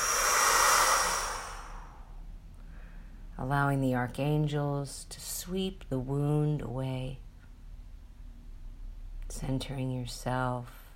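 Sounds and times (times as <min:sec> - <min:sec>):
long breath blown out: 0:00.0 - 0:02.1
speech: 0:03.4 - 0:07.2, 0:09.4 - 0:10.8.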